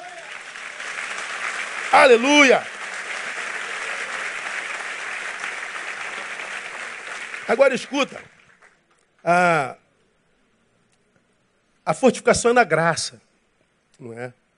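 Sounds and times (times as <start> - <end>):
audience applause: 0.0 - 8.8
speech: 1.9 - 2.7, 7.5 - 8.4, 9.2 - 9.8, 11.9 - 13.3, 14.0 - 14.4.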